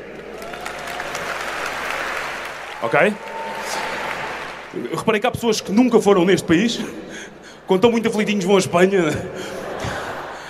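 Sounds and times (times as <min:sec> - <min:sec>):
audience applause: 0:00.0 - 0:05.2
speech: 0:02.8 - 0:03.8, 0:04.7 - 0:07.0, 0:07.7 - 0:09.6
laughter: 0:07.8 - 0:10.4.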